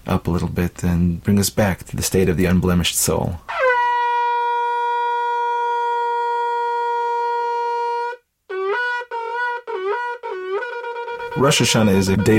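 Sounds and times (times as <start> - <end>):
speech: 0.1 - 3.6, 11.4 - 12.3
shofar ram's horn blasts: 3.5 - 12.3.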